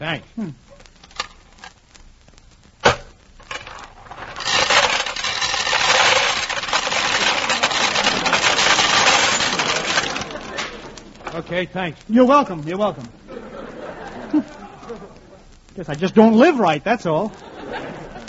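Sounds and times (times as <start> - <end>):
speech: 0.0 - 0.8, 11.4 - 13.2, 15.8 - 17.9
coins dropping into peanut vending machine: 4.4 - 10.8
laughter: 7.4 - 11.3, 13.1 - 15.5, 17.2 - 18.2.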